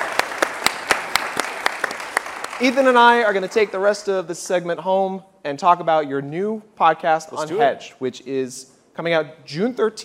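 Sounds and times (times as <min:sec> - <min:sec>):
audience clapping: 0:00.0 - 0:04.1
speech: 0:02.6 - 0:10.0.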